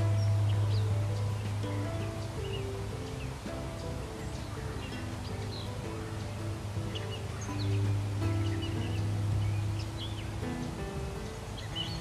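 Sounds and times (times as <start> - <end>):
catbirds and cardinals chirping in New Florence Pennsylvania: 0.0 - 11.9.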